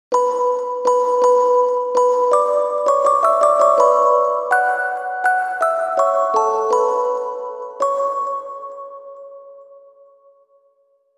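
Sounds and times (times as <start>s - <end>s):
music box: 0.1s - 10.2s.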